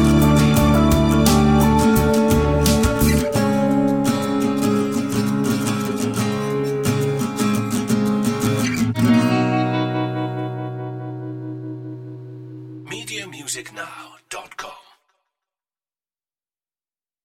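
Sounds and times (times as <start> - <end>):
on-hold music: 0.0 - 13.5.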